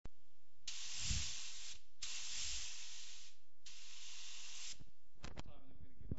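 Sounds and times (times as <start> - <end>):
spray: 0.7 - 4.9.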